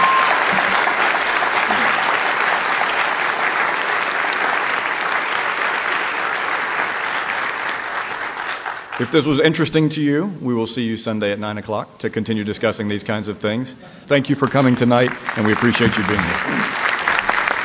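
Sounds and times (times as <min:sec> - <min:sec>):
audience applause: 0:00.0 - 0:09.5, 0:14.4 - 0:17.6
speech: 0:09.0 - 0:16.9.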